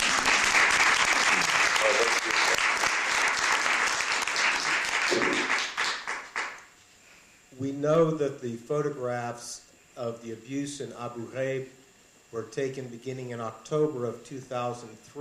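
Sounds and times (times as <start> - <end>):
crowd applauding: 0.0 - 6.6
speech: 7.6 - 15.1.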